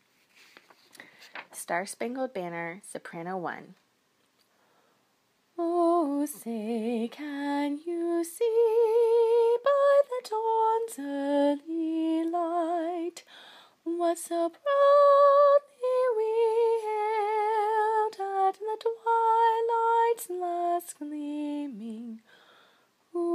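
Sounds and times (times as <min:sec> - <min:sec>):
soprano singing: 0:05.6 - 0:22.4, 0:23.1 - 0:23.3.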